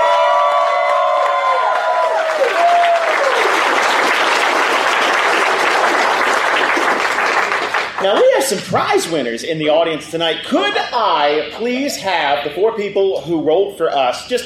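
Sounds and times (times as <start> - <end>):
audience at a Dragoncon 2019 live show clapping and cheering: 0.0 - 8.5
speech: 8.0 - 14.4.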